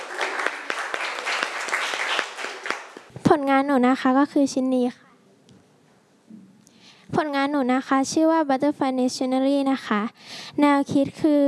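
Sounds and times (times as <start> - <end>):
applause: 0.0 - 3.1
speech: 3.3 - 5.0, 7.6 - 11.4.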